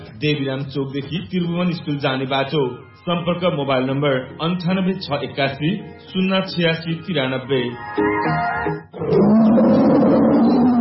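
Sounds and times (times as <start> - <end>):
speech: 0.2 - 9.3
bright musical tones of a radio station jingle: 1.6 - 9.0
tiger roar as a radio jingle sound effect: 9.0 - 10.8.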